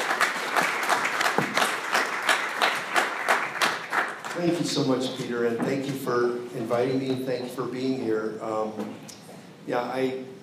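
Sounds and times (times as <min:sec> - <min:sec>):
audience applause welcoming a speaker to the stage: 0:00.0 - 0:05.0
speech: 0:04.4 - 0:10.4.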